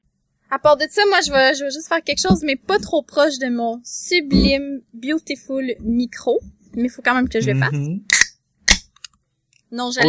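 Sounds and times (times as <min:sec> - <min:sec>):
speech: 0:00.5 - 0:08.2, 0:09.7 - 0:10.0
sharp pops of a beer being opened: 0:08.1 - 0:09.1.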